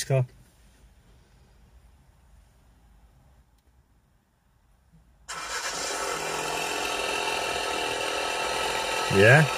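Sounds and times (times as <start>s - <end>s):
two-litre car engine with crackling exhaust: 5.3s - 9.5s.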